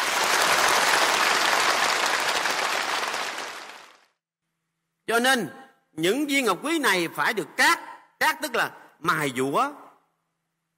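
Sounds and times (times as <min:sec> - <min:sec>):
audience applause during a Buddhist monk's dharma talk: 0:00.0 - 0:04.2
speech: 0:05.1 - 0:09.8.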